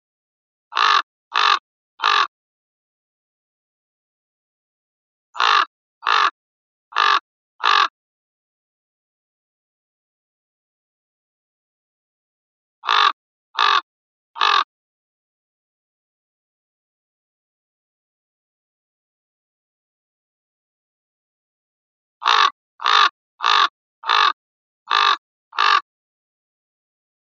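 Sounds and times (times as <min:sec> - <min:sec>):
common raven croaking: 0:00.8 - 0:02.3, 0:05.4 - 0:06.4, 0:07.0 - 0:07.9, 0:12.8 - 0:14.7, 0:22.2 - 0:25.9.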